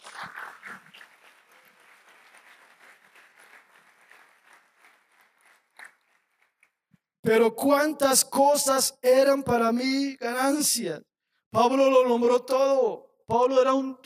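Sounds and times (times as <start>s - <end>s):
audience applause: 0.0s - 6.6s
speech: 7.3s - 14.0s.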